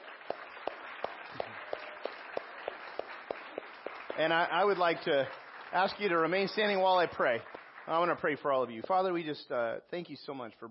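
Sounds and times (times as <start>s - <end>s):
audience clapping to welcome new members: 0.0s - 9.4s
speech: 4.2s - 10.7s.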